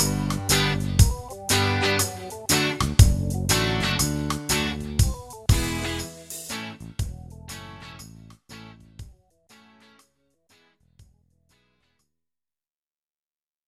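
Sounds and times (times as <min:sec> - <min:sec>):
Latin style guitar: 0:00.0 - 0:10.9.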